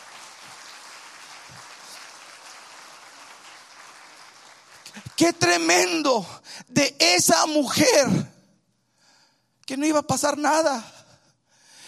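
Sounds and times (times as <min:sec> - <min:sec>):
audience applause: 0:00.0 - 0:06.0
speech: 0:05.0 - 0:08.3, 0:09.7 - 0:11.0.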